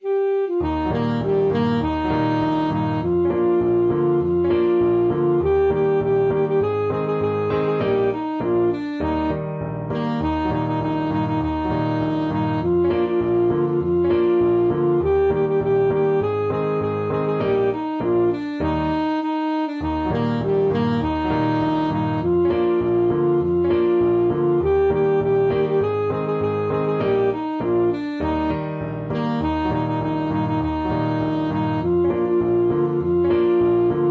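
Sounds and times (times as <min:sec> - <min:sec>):
saxophone: 0:00.0 - 0:34.0.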